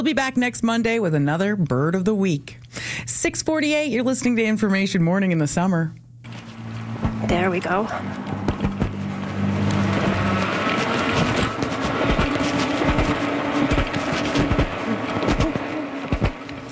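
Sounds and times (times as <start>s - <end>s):
speech: 0.0s - 6.4s, 7.2s - 8.2s
cyclist taking off on an e-bike: 6.3s - 16.7s.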